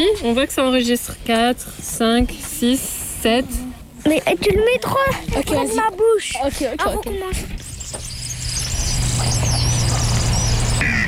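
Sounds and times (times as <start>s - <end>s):
speech: 0.0s - 8.1s
kingfisher's high-pitched whistle: 7.6s - 11.0s.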